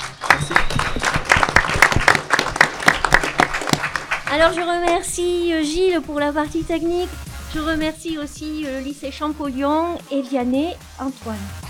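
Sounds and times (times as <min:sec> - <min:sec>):
audience applause: 0:00.0 - 0:05.0
speech: 0:04.4 - 0:11.6.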